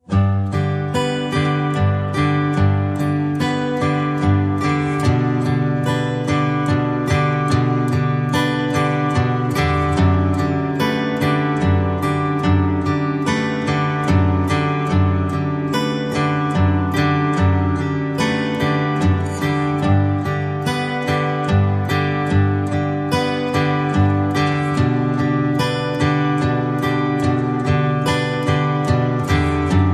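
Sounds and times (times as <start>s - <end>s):
Christmas guitar music: 0.0s - 29.9s.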